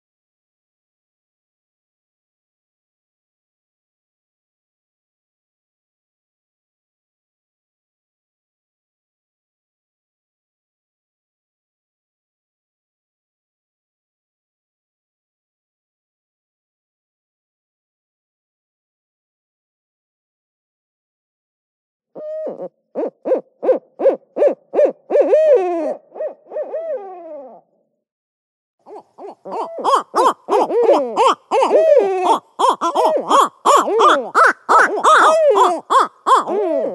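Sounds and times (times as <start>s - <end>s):
owl call playback: 22.2s - 27.6s, 28.9s - 36.9s.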